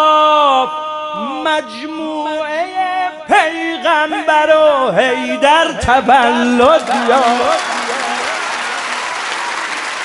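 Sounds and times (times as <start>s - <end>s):
speech: 1.5s - 7.6s
crowd clapping at a religious gathering: 6.6s - 10.0s.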